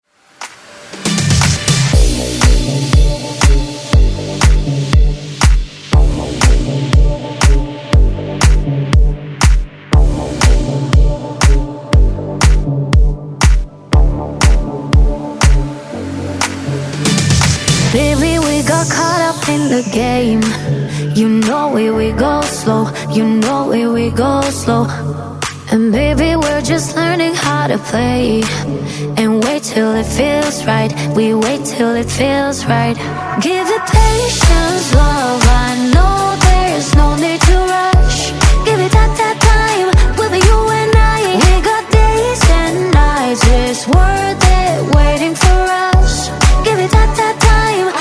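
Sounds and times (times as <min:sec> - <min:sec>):
dance music: 0:00.2 - 0:47.9.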